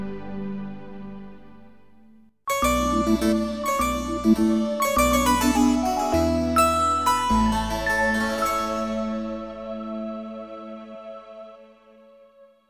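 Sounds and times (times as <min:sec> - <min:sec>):
gentle jingle: 0:02.5 - 0:09.5.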